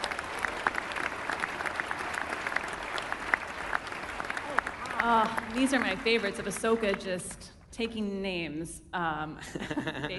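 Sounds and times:
round of applause: 0:00.0 - 0:07.2
speech: 0:05.0 - 0:10.1
laughter: 0:09.4 - 0:10.1.

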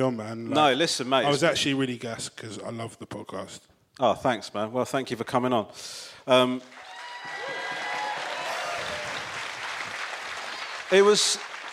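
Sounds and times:
speech: 0:00.0 - 0:06.8, 0:10.9 - 0:11.5
muted audience applause for the podcast: 0:06.6 - 0:11.7.

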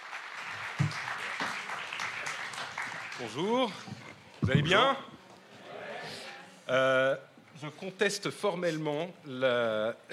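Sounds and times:
audience applause: 0:00.0 - 0:04.1
speech: 0:03.2 - 0:05.1, 0:06.7 - 0:10.1.

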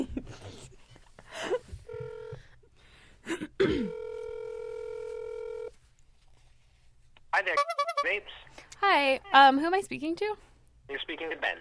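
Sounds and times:
phone call ringing tones: 0:01.9 - 0:02.5, 0:03.8 - 0:05.7
speech: 0:07.4 - 0:11.5.

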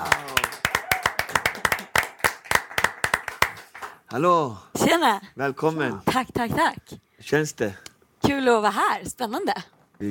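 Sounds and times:
audience applause: 0:00.0 - 0:04.0
speech: 0:04.1 - 0:10.0.

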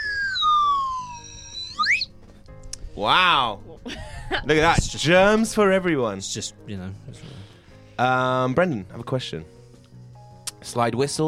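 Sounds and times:
slide whistle being played: 0:00.0 - 0:02.1
speech: 0:03.0 - 0:09.6, 0:10.6 - 0:11.2.

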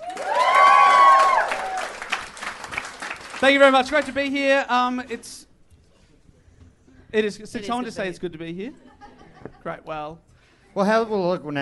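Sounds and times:
audience cheering: 0:00.0 - 0:03.2
audience applause: 0:00.0 - 0:04.3
speech: 0:03.4 - 0:05.5, 0:07.1 - 0:08.8, 0:09.6 - 0:11.6.

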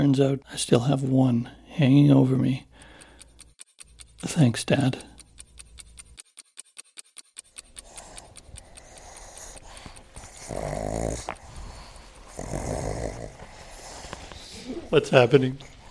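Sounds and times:
speech: 0:00.0 - 0:02.7, 0:04.2 - 0:05.1, 0:10.5 - 0:11.4, 0:14.9 - 0:15.7
pugs playing and making noise: 0:07.7 - 0:15.8.

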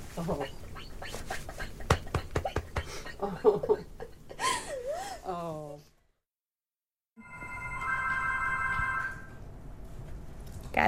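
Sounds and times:
speech: 0:00.2 - 0:01.2, 0:03.2 - 0:04.0
laughter: 0:01.5 - 0:04.7
telephone bell ringing: 0:07.2 - 0:09.5.

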